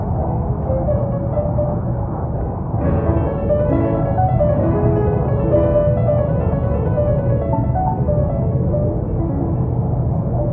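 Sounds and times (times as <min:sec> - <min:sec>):
airplane cabin drone in first class: 0:00.0 - 0:10.5
classical music: 0:00.7 - 0:01.7, 0:02.8 - 0:10.5.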